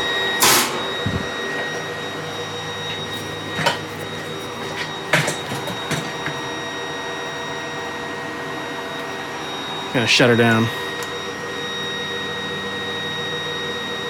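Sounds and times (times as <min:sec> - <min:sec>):
malfunctioning studio server high-pitched electronic beep: 0:00.0 - 0:07.7
server low mechanical hum: 0:00.0 - 0:14.0
clunks and clicks: 0:04.6 - 0:06.4
speech: 0:10.0 - 0:10.8.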